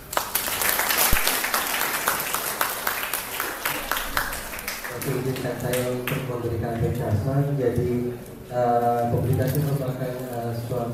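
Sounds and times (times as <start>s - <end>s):
lecture audience applauding a professor's talk: 0.0s - 6.1s
speech: 5.1s - 10.9s.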